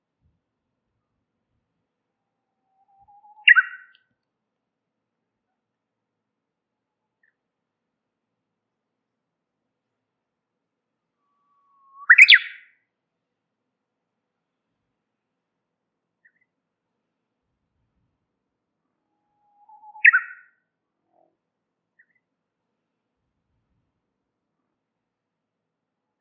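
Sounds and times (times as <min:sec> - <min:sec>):
warbler chirping and twittering: 0:03.3 - 0:03.9, 0:19.6 - 0:20.4.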